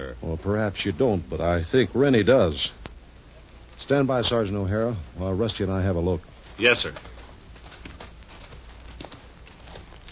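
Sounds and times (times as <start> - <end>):
hiss: 0.0 - 10.1
speech: 0.4 - 2.8, 3.8 - 7.2
horse hooves clip-clopping as a horse is led away from a wagon: 5.7 - 10.1.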